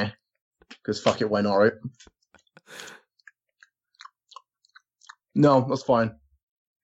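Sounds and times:
speech: 0.0 - 0.2, 0.8 - 3.0, 5.4 - 6.2
mouth licking and smacking: 2.0 - 5.4.

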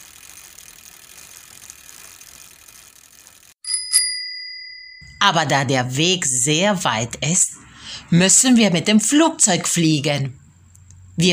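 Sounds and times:
bicycle freewheel ratchet ticking: 0.0 - 3.6
bicycle bell ringing: 3.6 - 5.4
speech: 5.2 - 10.4.

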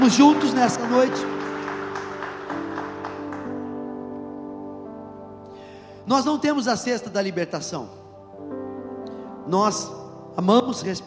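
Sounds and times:
speech: 0.0 - 1.4, 6.1 - 8.6, 9.5 - 11.0
round of applause: 0.0 - 3.8.

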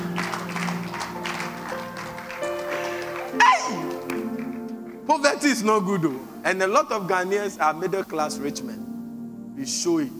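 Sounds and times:
crowd clapping in a large room: 0.0 - 5.0
speech: 5.2 - 8.9, 9.6 - 10.1.

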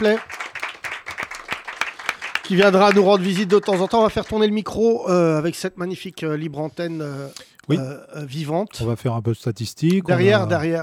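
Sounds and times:
speech: 0.0 - 0.4, 2.5 - 10.8
audience applause: 0.0 - 4.5.

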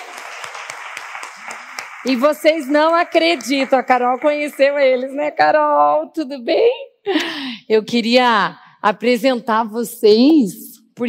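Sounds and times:
crowd applauding: 0.0 - 5.2
speech: 2.0 - 11.0.

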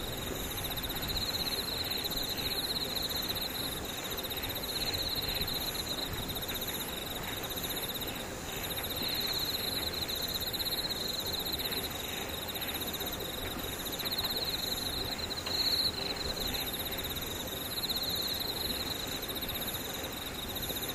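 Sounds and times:
insects: 0.0 - 20.9.

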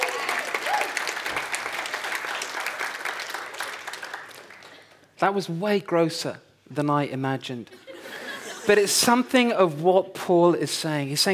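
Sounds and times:
small crowd applause: 0.0 - 5.1
speech: 5.2 - 11.3
laughter: 7.7 - 8.9.

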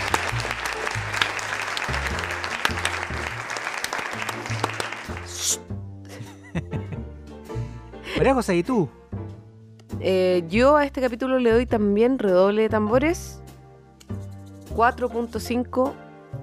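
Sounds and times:
crowd applause: 0.0 - 5.6
low pulsing backing music: 0.0 - 16.4
laughter: 6.1 - 7.1
speech: 8.2 - 9.0, 10.0 - 13.4, 14.8 - 16.0.

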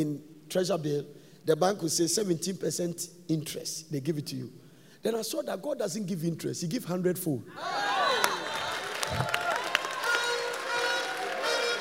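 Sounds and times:
speech: 0.0 - 7.9
audience clapping: 8.0 - 11.8.

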